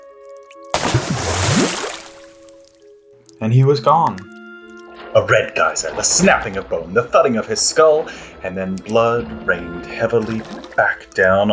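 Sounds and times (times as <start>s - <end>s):
foot splashing into a filled bath: 0.6s - 2.8s
speech: 3.4s - 4.3s, 5.2s - 11.5s.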